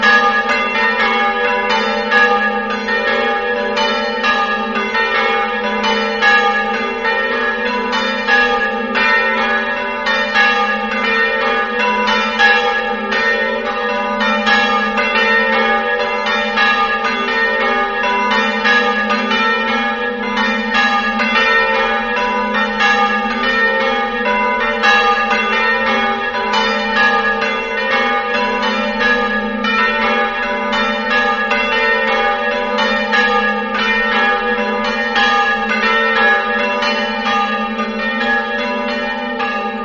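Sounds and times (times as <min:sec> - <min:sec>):
church bells of San Lorenzo ringing: 0:00.0 - 0:39.8.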